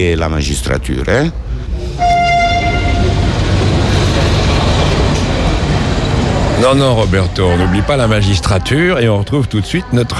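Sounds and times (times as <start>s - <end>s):
speech: 0.0s - 2.1s, 6.6s - 10.1s
rolling rail cars rumbling at Bologna railway station: 0.0s - 9.8s
train horn at Bologna railway station: 2.0s - 3.3s.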